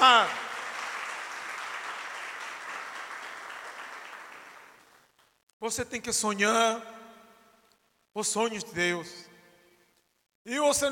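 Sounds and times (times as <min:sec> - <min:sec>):
round of applause: 0:00.0 - 0:05.5
speech: 0:05.6 - 0:07.0, 0:08.2 - 0:09.3, 0:10.4 - 0:10.8.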